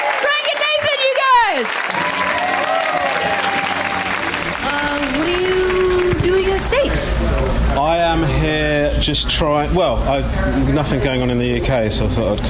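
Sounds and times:
shouted cheers and whoops: 0.0 - 4.4
crowd applauding: 0.0 - 7.6
speech: 7.0 - 12.4.

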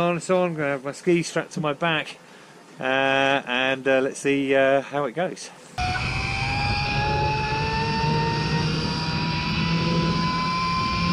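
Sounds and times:
speech: 0.0 - 6.0
constant rushing noise: 5.8 - 11.1
two-line zip wire at Val Thorens whining during a ride: 5.8 - 11.1.

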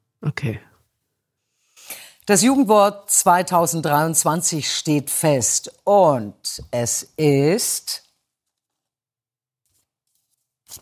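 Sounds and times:
speech: 0.2 - 0.7, 2.3 - 8.0
envelope being opened: 9.6 - 10.7.

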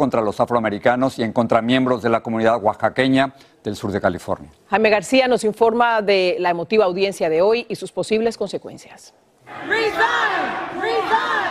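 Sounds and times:
speech: 0.0 - 11.4
crowd shouting demands for resignation: 9.4 - 11.4.

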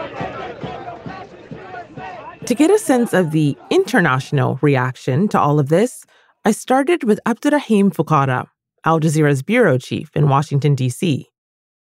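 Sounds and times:
dense crowd of protesters yelling and shouting: 0.0 - 4.6
rhythmic bursts of voices: 0.0 - 6.0
speech: 2.5 - 11.3.

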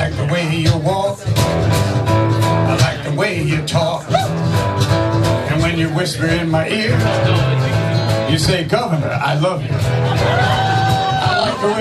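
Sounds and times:
band playing hits from the 60s: 0.0 - 11.8
speech: 0.6 - 1.3, 5.8 - 10.7, 11.6 - 11.8
crowd clapping and cheering: 9.9 - 11.8.

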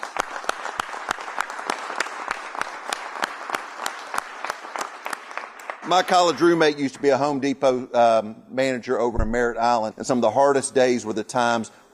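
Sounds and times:
audience applause: 0.0 - 6.4
speech: 5.9 - 11.8.

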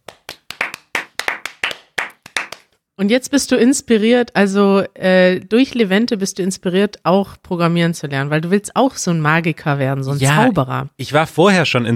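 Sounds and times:
applause: 0.0 - 2.7
speech: 3.0 - 11.9.

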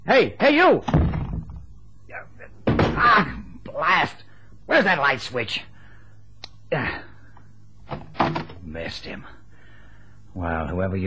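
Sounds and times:
speech: 0.1 - 1.1, 3.0 - 5.7, 6.7 - 7.1, 8.2 - 9.4, 10.4 - 11.0
chair knocked over in the dark: 0.8 - 1.6, 2.6 - 3.4, 7.8 - 8.6.

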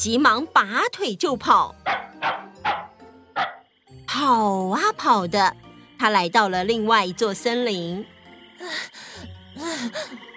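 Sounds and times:
speech: 0.0 - 2.4, 4.2 - 10.2
dog barking: 1.8 - 3.7.

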